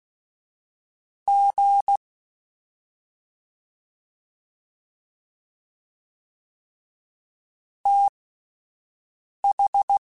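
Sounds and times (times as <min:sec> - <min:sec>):
fast CW Morse code groups: 0:01.3 - 0:02.0, 0:07.9 - 0:08.1, 0:09.5 - 0:10.0.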